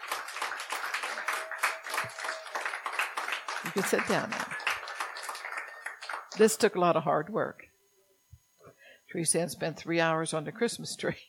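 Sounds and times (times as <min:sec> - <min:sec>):
audience hand clapping: 0:00.0 - 0:06.6
speech: 0:03.6 - 0:04.6, 0:06.4 - 0:07.7, 0:09.1 - 0:11.2.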